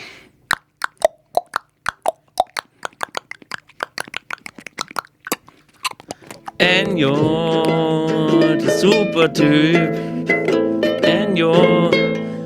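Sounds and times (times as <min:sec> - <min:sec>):
horse hoof clopping: 0:00.5 - 0:07.8
speech: 0:06.6 - 0:10.4, 0:11.4 - 0:12.0.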